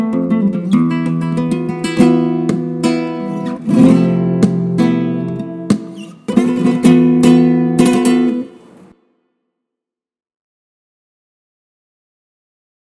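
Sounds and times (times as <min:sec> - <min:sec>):
flamenco music: 0:00.0 - 0:09.0.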